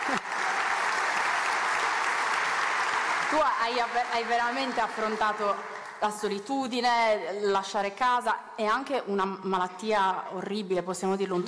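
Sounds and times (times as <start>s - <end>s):
audience applause: 0.0s - 6.0s
speech: 3.3s - 11.4s.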